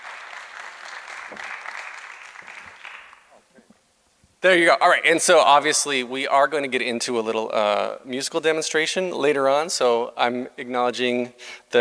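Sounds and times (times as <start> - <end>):
audience applause welcoming panel guests onstage: 0.0 - 3.4
speech: 1.3 - 1.6, 4.4 - 11.7.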